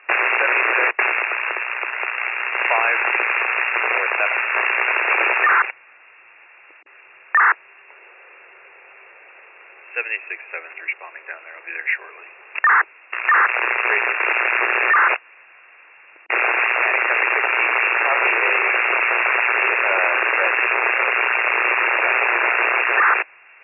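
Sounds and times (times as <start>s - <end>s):
radio transmission static: 0.0s - 5.8s, 7.3s - 8.0s, 9.9s - 15.2s, 16.3s - 23.3s
speech: 10.0s - 15.2s.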